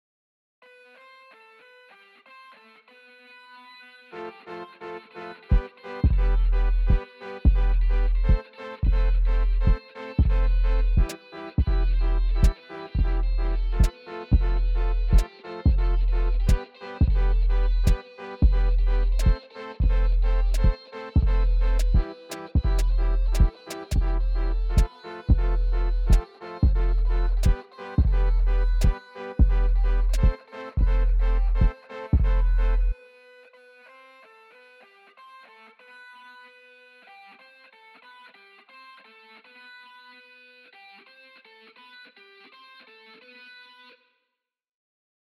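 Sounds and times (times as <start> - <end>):
music beat: 5.5 - 33.0.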